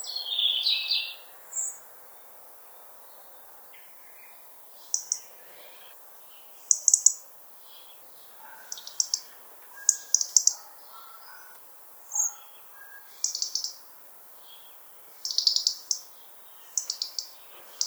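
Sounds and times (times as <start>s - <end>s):
European robin song: 0.0s - 1.8s, 3.1s - 11.5s, 12.1s - 17.8s.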